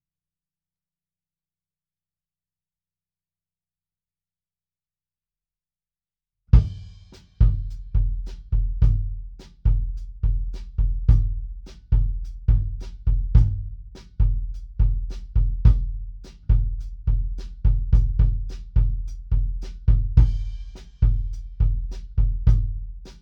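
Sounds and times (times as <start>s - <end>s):
kick drum: 6.6s - 23.2s.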